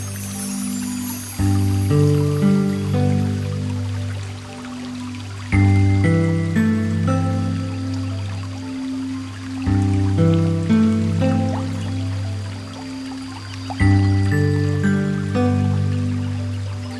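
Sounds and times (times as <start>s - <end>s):
melody: 0.0s - 16.9s
water sounds: 0.0s - 16.9s.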